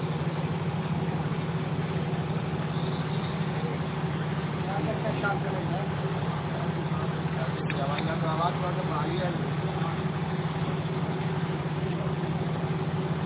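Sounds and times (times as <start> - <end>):
generator running in the background: 0.0 - 13.2
people talking: 4.6 - 10.4, 11.2 - 12.5.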